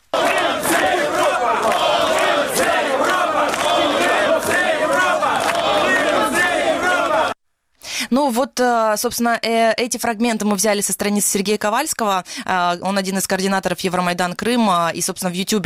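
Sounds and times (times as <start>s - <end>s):
large crowd shouting in approval: 0.1s - 7.4s
speech: 8.2s - 15.6s.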